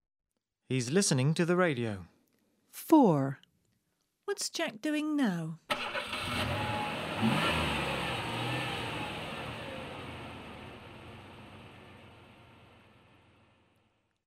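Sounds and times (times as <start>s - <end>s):
speech: 0.7s - 2.2s, 2.8s - 3.4s, 4.3s - 6.5s, 7.2s - 7.7s
car engine revving then humming: 5.7s - 13.3s.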